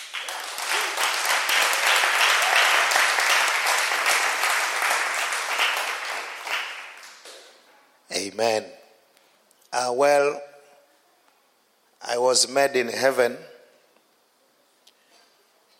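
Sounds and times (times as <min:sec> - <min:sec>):
audience clapping: 0:00.0 - 0:07.6
speech: 0:08.3 - 0:08.8, 0:09.7 - 0:10.5, 0:12.1 - 0:13.5.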